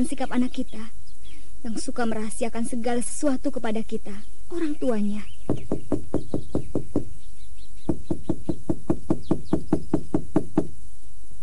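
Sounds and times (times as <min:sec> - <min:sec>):
speech: 0:00.0 - 0:01.0, 0:01.6 - 0:06.0
knocking on a door: 0:05.5 - 0:07.1, 0:07.8 - 0:10.7.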